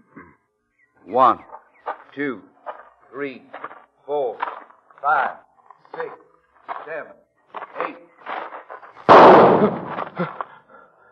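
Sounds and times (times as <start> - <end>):
speech: 1.1 - 1.5, 2.2 - 2.5, 3.1 - 5.4, 6.9 - 7.2, 9.6 - 10.4
pistol shot fired in a duel: 9.1 - 10.2.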